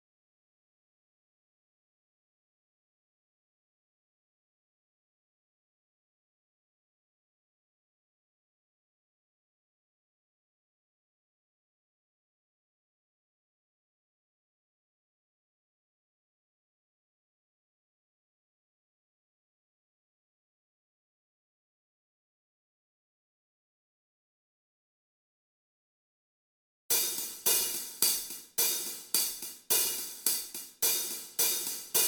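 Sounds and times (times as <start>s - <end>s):
hi-hats: 26.9s - 32.0s.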